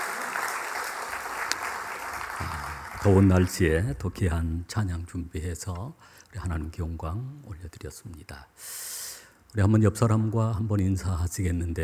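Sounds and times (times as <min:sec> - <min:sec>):
sharp clap: 0:00.0 - 0:03.7
congregation applause in a church after a choir's hymn: 0:00.0 - 0:03.9
speech: 0:02.4 - 0:11.8.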